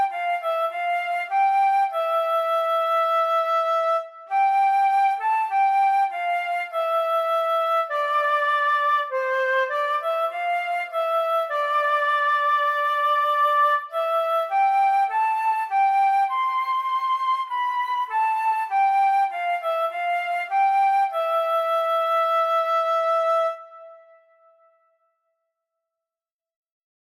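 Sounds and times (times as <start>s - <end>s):
solo flute: 0.0s - 25.0s.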